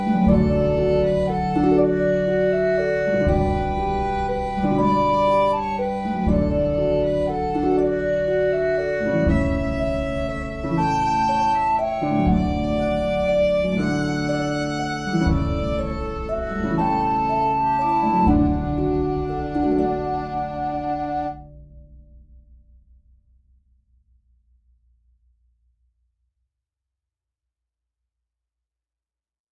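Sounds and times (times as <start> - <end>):
violin melody: 0.0 - 21.5.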